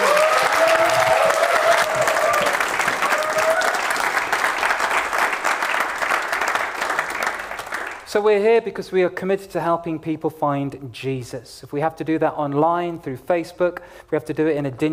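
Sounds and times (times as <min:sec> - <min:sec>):
audience applause: 0:00.0 - 0:08.1
speech: 0:08.1 - 0:14.9.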